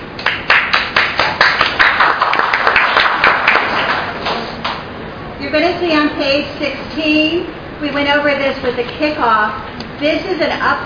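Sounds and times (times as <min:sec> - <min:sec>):
audience applause: 0:00.2 - 0:04.5
speech: 0:05.6 - 0:10.8.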